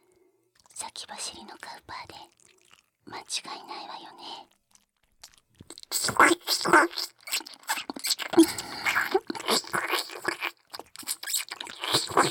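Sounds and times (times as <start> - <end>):
ear licking: 4.7 - 12.2.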